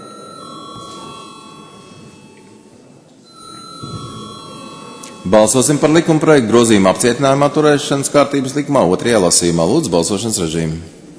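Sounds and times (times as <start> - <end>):
electric bell ringing in a parliament chamber before a vote: 0.0 - 7.1
speech: 5.3 - 11.0.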